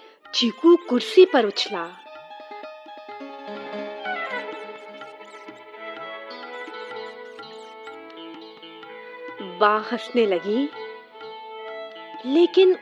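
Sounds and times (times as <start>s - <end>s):
mouse squeaking: 0.3s - 2.5s, 4.3s - 8.0s
speech: 0.4s - 2.0s, 9.6s - 10.8s, 12.2s - 12.8s.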